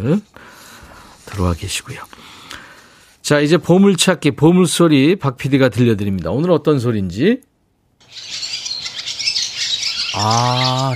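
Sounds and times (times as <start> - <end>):
speech: 0.0 - 0.6, 1.3 - 2.4, 3.3 - 7.5, 10.2 - 10.9
swallow calls: 8.0 - 10.9.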